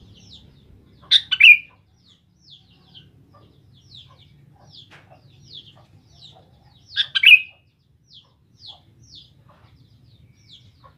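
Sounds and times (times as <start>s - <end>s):
Sooty-headed bulbul song: 0.0s - 3.2s, 7.0s - 9.3s.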